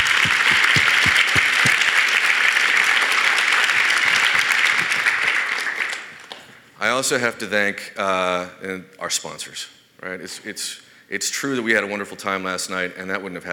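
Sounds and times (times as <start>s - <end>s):
audience applause: 0.0s - 6.2s
speech: 7.0s - 13.5s.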